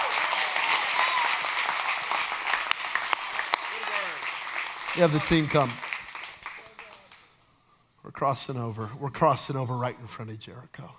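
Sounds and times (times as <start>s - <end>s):
audience applause: 0.0s - 7.3s
speech: 5.0s - 5.8s, 8.2s - 10.9s.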